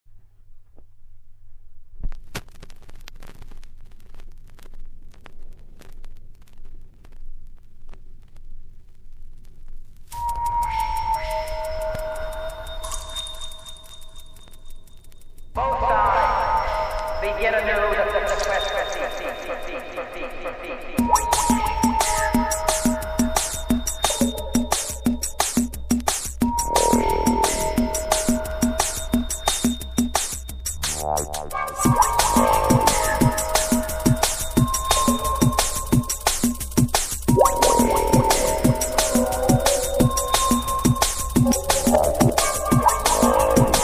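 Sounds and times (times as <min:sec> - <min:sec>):
drum and bass jungle and old skool music: 0:10.2 - 0:13.9, 0:15.6 - 0:43.8.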